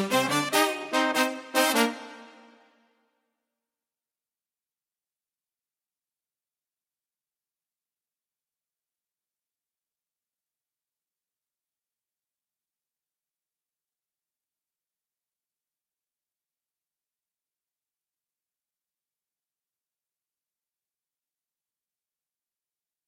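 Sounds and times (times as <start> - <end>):
brass instruments: 0.0 - 3.0.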